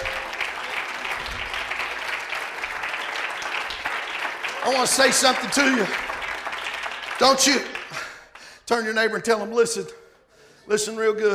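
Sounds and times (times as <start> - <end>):
audience clapping hands: 0.0 - 8.7
speech: 4.6 - 6.1, 7.2 - 7.8, 8.7 - 10.0, 10.7 - 11.3.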